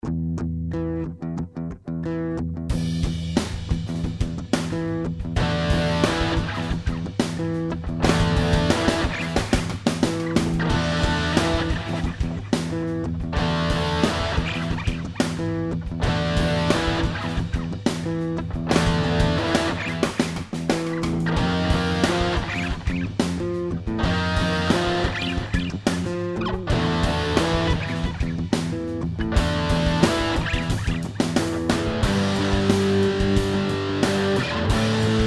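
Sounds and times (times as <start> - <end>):
hard funk music: 0.0 - 35.2.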